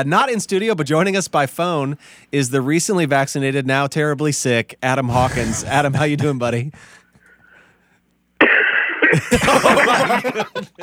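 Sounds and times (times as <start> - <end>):
speech: 0.0 - 7.0, 9.1 - 10.8
harsh cough: 5.1 - 6.0
laughter: 5.2 - 6.5, 9.2 - 10.8.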